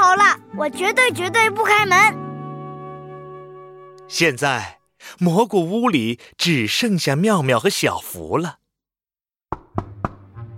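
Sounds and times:
speech: 0.6 - 2.2, 4.1 - 8.6
knocking on a door: 9.5 - 10.3.

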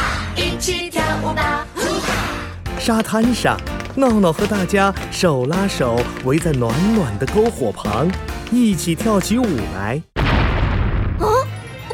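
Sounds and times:
speech: 0.6 - 1.7, 2.8 - 10.1
pirate ship cannon fire: 10.2 - 11.4.

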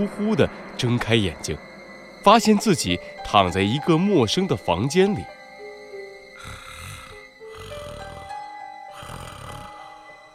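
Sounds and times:
speech: 0.0 - 5.4
snoring: 6.4 - 10.0.

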